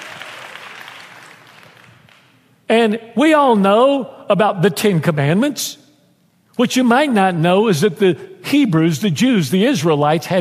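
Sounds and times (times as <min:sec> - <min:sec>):
audience applause: 0:00.0 - 0:02.3
speech: 0:02.7 - 0:05.8, 0:06.6 - 0:10.4.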